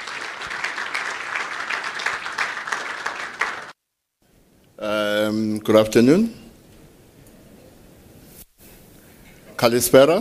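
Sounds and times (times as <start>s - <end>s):
audience applause: 0.0s - 3.8s
speech: 4.8s - 6.4s, 9.6s - 10.1s.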